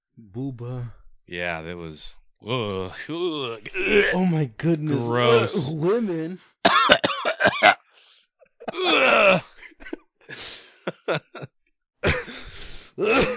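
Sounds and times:
speech: 0:00.4 - 0:07.8, 0:11.1 - 0:11.4
person groaning: 0:02.5 - 0:04.3, 0:04.9 - 0:06.0, 0:08.7 - 0:09.6, 0:13.0 - 0:13.3
laughter: 0:03.1 - 0:07.8, 0:08.6 - 0:11.5
person choking and coughing: 0:03.7 - 0:04.2, 0:04.9 - 0:05.8, 0:06.7 - 0:07.8, 0:08.6 - 0:11.4, 0:12.0 - 0:13.3.

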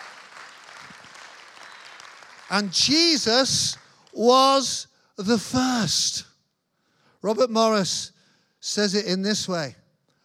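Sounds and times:
audience applause: 0:00.0 - 0:02.9
speech: 0:02.5 - 0:06.3, 0:07.2 - 0:09.8.

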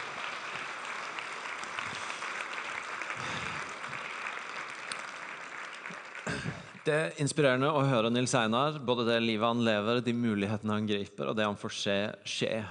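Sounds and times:
audience applause: 0:00.0 - 0:07.1
speech: 0:06.8 - 0:12.6.

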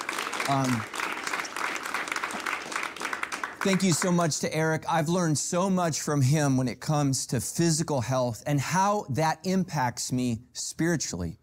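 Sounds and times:
church congregation at Sandals Church applauding Pastor Eric: 0:00.0 - 0:04.7
speech: 0:00.5 - 0:01.0, 0:03.6 - 0:11.4.

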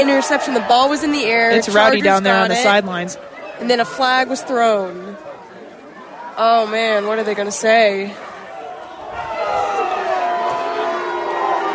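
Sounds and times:
speech: 0:00.0 - 0:05.3, 0:06.4 - 0:08.3
stadium crowd booing: 0:00.0 - 0:11.7.

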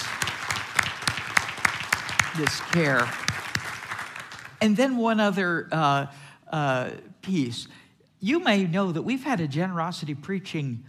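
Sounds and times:
round of applause: 0:00.0 - 0:04.7
speech: 0:02.4 - 0:03.4, 0:04.6 - 0:10.8.

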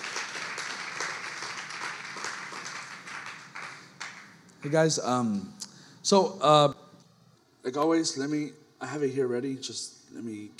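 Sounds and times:
audience applause: 0:00.0 - 0:04.9
speech: 0:04.6 - 0:06.7, 0:07.6 - 0:10.5.

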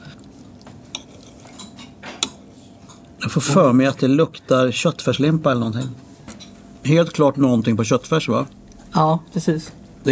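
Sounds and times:
knife and cutlery handled on a china plate: 0:00.9 - 0:03.1
speech: 0:03.2 - 0:06.1, 0:06.8 - 0:10.1.

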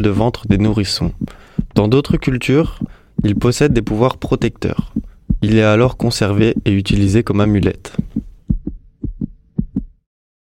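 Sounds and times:
speech: 0:00.0 - 0:08.3
heartbeat heard through the belly: 0:00.5 - 0:07.3, 0:07.9 - 0:10.0.

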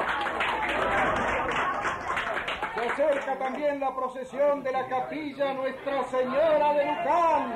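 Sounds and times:
crowd applause: 0:00.0 - 0:03.6
speech: 0:03.0 - 0:07.5.

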